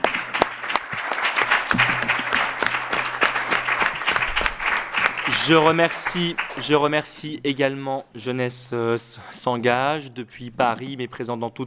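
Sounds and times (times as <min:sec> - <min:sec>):
audience applause: 0:00.0 - 0:06.8
speech: 0:05.4 - 0:11.6.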